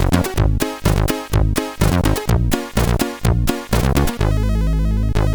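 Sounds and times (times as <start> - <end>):
synthesizer melody on CSG8580R5 sound chip: 0.2 - 5.3.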